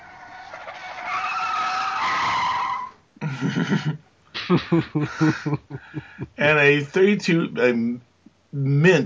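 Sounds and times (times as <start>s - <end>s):
1932 Duesenberg tire screech skidding to a halt on a seaplane airport slipway: 0.0s - 3.0s
laughter: 3.2s - 6.4s
speech: 3.4s - 9.0s.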